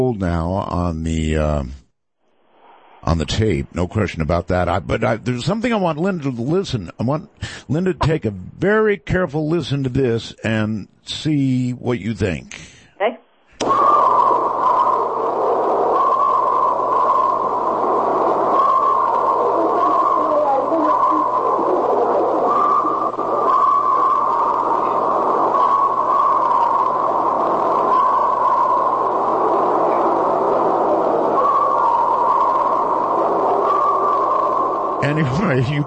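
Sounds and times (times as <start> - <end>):
speech: 0.0 - 1.8, 3.0 - 13.1, 35.2 - 35.8
recorded blood-curdling screams: 13.6 - 35.8.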